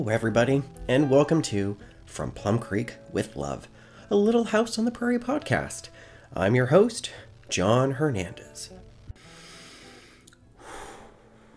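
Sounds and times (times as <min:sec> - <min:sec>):
speech: 0:00.0 - 0:08.8
person breathing heavily catching their breath: 0:01.8 - 0:02.1, 0:03.7 - 0:04.1, 0:05.9 - 0:06.3, 0:09.2 - 0:11.5.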